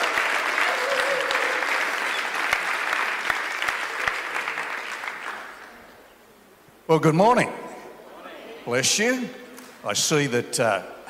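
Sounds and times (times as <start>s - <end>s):
audience applause: 0.0s - 5.9s
speech: 6.9s - 7.6s, 8.7s - 11.0s.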